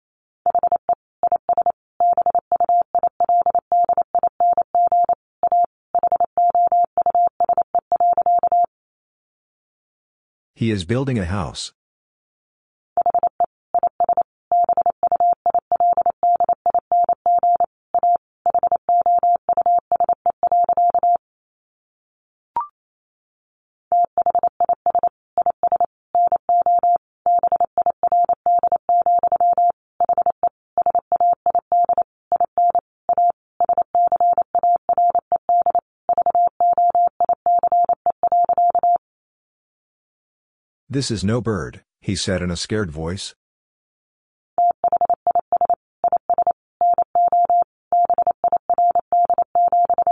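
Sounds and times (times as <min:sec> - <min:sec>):
Morse code practice tones: 0:00.5 - 0:08.7, 0:13.0 - 0:21.2, 0:24.0 - 0:39.0, 0:44.6 - 0:50.1
speech: 0:10.6 - 0:11.8, 0:41.0 - 0:43.4.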